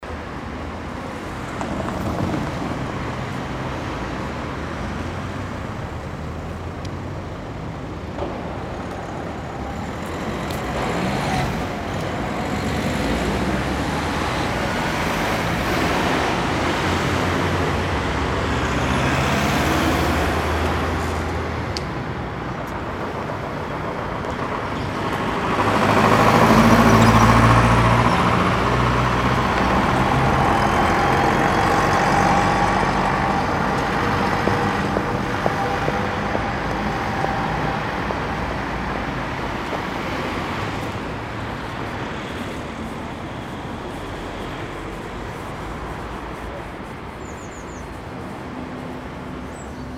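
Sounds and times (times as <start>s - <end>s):
cars in the city: 0.0s - 49.9s.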